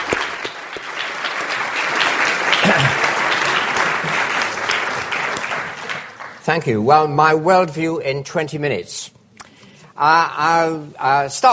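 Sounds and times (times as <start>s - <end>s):
round of applause: 0.0s - 6.6s
speech: 6.5s - 9.2s, 10.0s - 11.5s.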